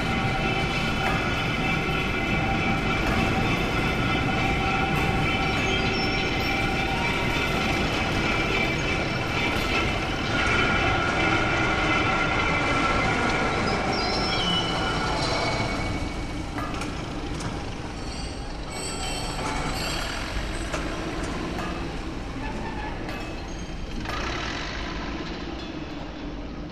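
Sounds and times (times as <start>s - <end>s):
warehouse exterior ambience: 0.0s - 26.6s.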